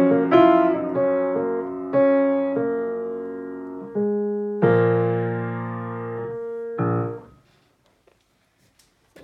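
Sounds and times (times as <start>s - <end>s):
music in B flat minor: 0.0s - 7.4s.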